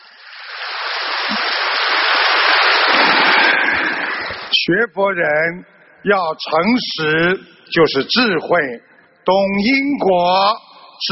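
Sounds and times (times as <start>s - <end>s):
audience applause: 0.0s - 4.5s
speech: 4.7s - 11.1s.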